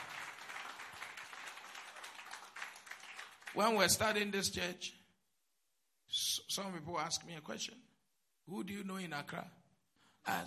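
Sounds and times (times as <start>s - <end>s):
audience clapping: 0.0s - 4.1s
speech: 3.5s - 5.0s, 6.6s - 7.9s, 8.5s - 9.6s, 10.2s - 10.4s.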